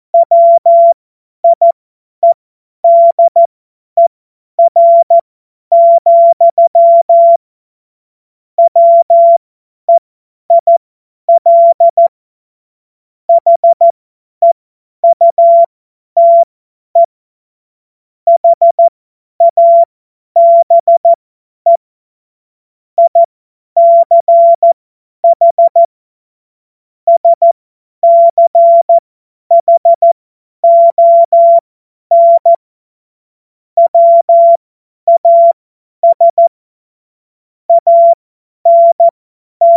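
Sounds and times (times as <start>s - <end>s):
morse code beeps: 0.2s - 3.4s, 4.6s - 7.4s, 8.6s - 12.1s, 13.3s - 17.1s, 18.3s - 21.8s, 23.0s - 25.9s, 27.1s - 32.6s, 33.8s - 36.5s, 37.7s - 39.7s.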